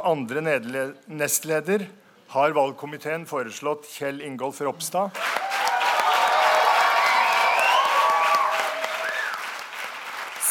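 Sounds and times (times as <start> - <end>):
speech: 0.0 - 5.5
cheers: 5.2 - 10.5
crowd applauding: 5.2 - 10.5
whistles: 7.2 - 8.4, 9.0 - 9.5.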